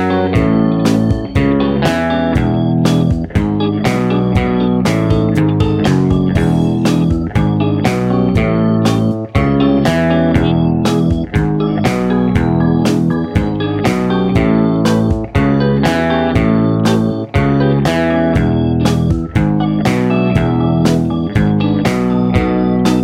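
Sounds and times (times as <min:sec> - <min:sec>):
fast guitar riffs: 0:00.0 - 0:23.0.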